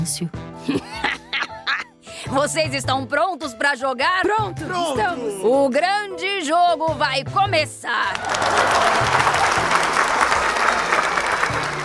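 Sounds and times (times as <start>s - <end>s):
speech: 0.0s - 1.1s, 2.2s - 9.6s
laughter: 0.7s - 1.9s
crowd applauding: 8.1s - 11.8s.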